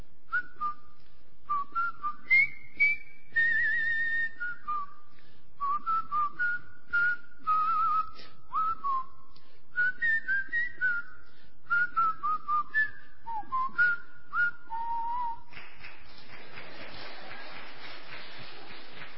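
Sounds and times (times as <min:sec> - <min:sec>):
people whistling a march: 0:01.5 - 0:05.0, 0:05.6 - 0:09.1, 0:09.8 - 0:15.5.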